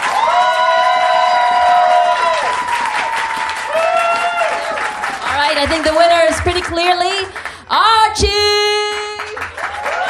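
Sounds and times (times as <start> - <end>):
high-pitched whoops and cheers: 0.0 - 5.2, 9.6 - 10.0
audience applauding: 0.0 - 8.1, 8.8 - 10.0
speech: 5.6 - 8.7.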